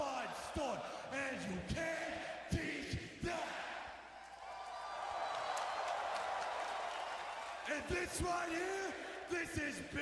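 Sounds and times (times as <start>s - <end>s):
speech: 0.6s - 2.4s, 7.8s - 10.0s
wrestling crowd roaring and cheering: 3.3s - 9.2s
people clapping: 4.3s - 8.5s.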